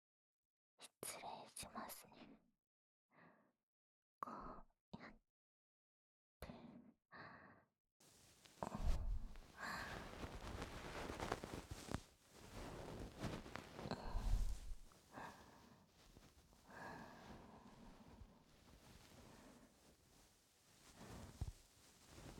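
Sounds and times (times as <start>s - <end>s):
speech: 1.0s - 2.4s, 4.2s - 5.2s
scratchy rustle of gentle cleaning: 8.0s - 22.3s
soft breathy puffs: 8.0s - 22.3s.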